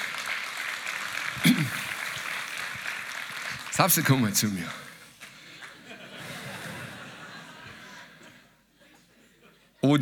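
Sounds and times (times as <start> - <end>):
audience applause: 0.0 - 8.0
speech: 3.8 - 4.8
laughter: 5.5 - 9.8.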